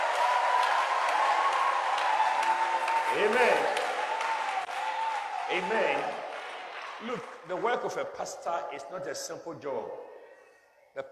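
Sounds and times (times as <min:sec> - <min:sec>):
people clapping hands: 0:00.0 - 0:08.4
speech: 0:03.1 - 0:03.8, 0:05.5 - 0:06.2, 0:07.0 - 0:10.1, 0:11.0 - 0:11.1.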